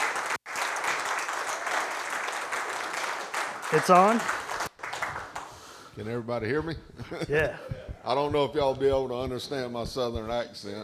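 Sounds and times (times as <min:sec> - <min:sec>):
audience applause: 0:00.0 - 0:05.6
speech: 0:03.7 - 0:04.4, 0:06.0 - 0:10.8
laughter: 0:06.1 - 0:09.5.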